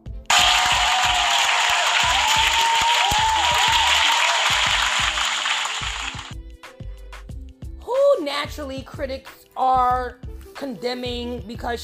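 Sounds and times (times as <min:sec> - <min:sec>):
audience applause: 0:00.3 - 0:06.3
speech: 0:08.6 - 0:11.8.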